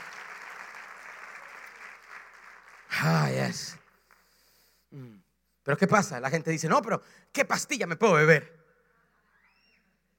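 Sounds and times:
audience applause: 0:00.0 - 0:04.1
speech: 0:03.3 - 0:03.8, 0:04.9 - 0:08.6.

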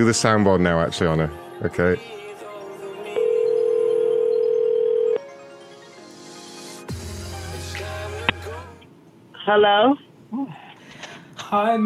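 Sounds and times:
speech: 0:00.0 - 0:02.2, 0:09.5 - 0:10.6, 0:11.5 - 0:11.8
telephone dial tone: 0:03.2 - 0:05.3.

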